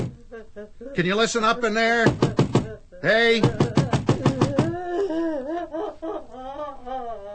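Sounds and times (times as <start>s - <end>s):
knocking on a door: 0.0s - 0.2s, 2.0s - 4.8s
wavering whimpering vocal sound: 0.0s - 1.8s, 2.6s - 7.3s
speech: 0.4s - 3.8s.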